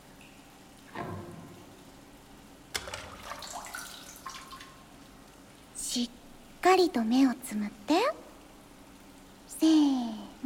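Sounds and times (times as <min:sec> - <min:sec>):
water poured over a head during hair washing: 0:02.8 - 0:04.8
speech: 0:06.0 - 0:08.2, 0:09.6 - 0:10.4.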